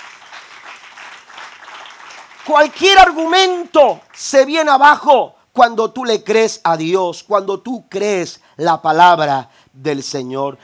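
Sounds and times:
crowd applause: 0.0s - 3.3s
speech: 2.4s - 10.6s.

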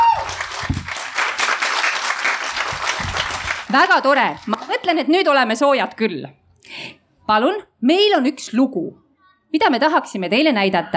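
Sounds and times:
audience applause at a live event: 0.0s - 4.9s
speech: 3.7s - 6.4s, 7.3s - 10.9s.

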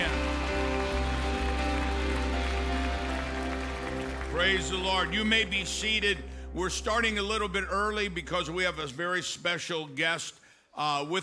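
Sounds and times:
audience applause: 0.0s - 5.5s
speech: 4.4s - 11.2s.

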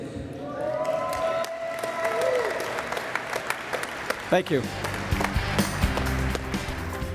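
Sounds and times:
applause and cheering: 0.4s - 7.0s
speech: 4.3s - 4.9s.

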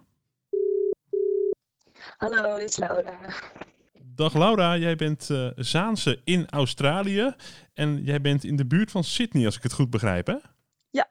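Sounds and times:
telephone ringing tone of an outgoing call: 0.5s - 1.6s
speech: 2.0s - 3.6s, 4.2s - 11.1s.

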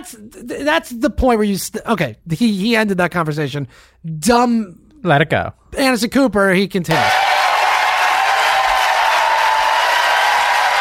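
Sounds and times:
speech: 0.0s - 7.2s
large crowd applauding and cheering in a standing ovation: 6.9s - 10.7s.

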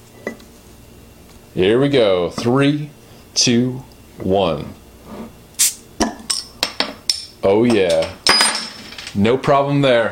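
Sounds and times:
speech: 1.6s - 4.8s, 7.4s - 8.2s, 9.2s - 10.1s
beer bottle opened with Cat bottle opener: 5.6s - 6.4s.

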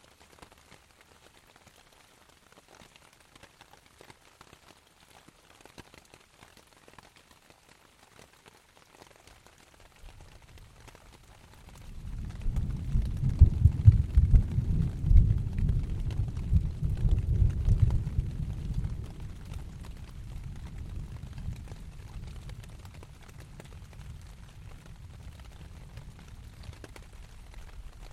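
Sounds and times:
rain on tent: 0.0s - 28.1s
thunder with reverb in a valley: 11.8s - 27.0s.

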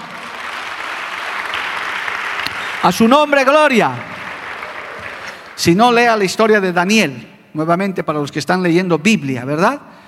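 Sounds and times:
audience applause: 0.0s - 5.9s
speech: 2.8s - 4.1s, 5.6s - 10.0s.

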